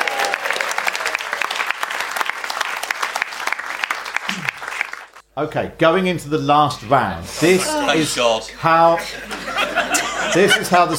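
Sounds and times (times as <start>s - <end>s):
audience applause: 0.0s - 5.2s
speech: 5.4s - 10.9s
laughter: 8.9s - 10.9s.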